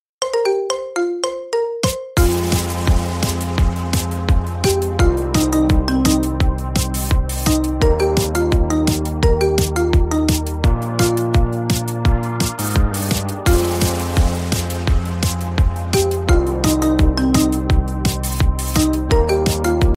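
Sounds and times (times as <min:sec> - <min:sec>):
instrumental ringtone music: 0:00.2 - 0:19.9.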